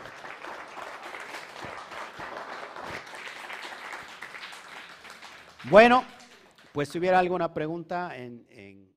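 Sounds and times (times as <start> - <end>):
audience applause: 0.0 - 6.9
speech: 5.6 - 6.1, 6.8 - 8.9.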